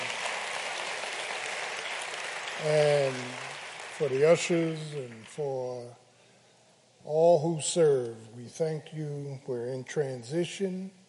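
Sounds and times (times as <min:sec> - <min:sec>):
crowd applauding for the choir: 0:00.0 - 0:05.4
speech: 0:02.6 - 0:06.0, 0:07.0 - 0:11.0.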